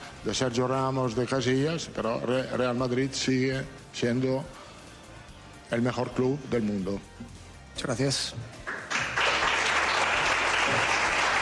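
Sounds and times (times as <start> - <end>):
speech: 0.2 - 4.6, 5.7 - 8.6
journalists applauding: 8.6 - 11.4.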